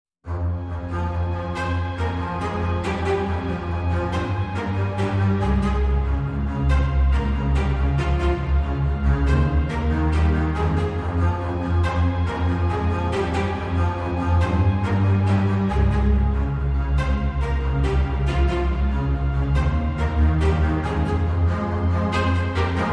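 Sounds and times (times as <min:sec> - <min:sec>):
string instruments mix: 0:00.2 - 0:22.9.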